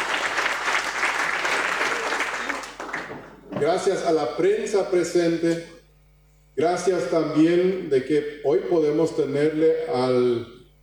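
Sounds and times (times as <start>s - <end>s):
audience applause: 0.0s - 3.4s
speech: 3.6s - 5.8s, 6.6s - 10.6s.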